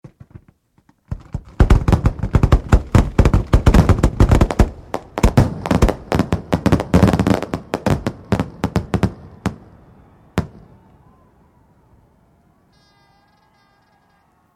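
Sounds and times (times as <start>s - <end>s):
fireworks: 1.1s - 11.2s.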